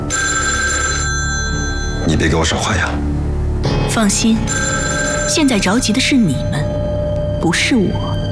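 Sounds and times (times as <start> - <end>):
telephone ringing: 0.1 - 2.1, 4.5 - 6.0
speech: 2.1 - 3.2, 4.0 - 6.6, 7.4 - 8.2.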